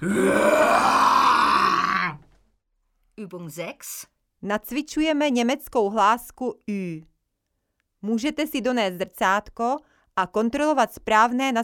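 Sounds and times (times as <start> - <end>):
speech: 0.0 - 0.6, 3.2 - 7.1, 8.0 - 11.6
person growling a throaty roar imitating a lion: 0.0 - 2.2.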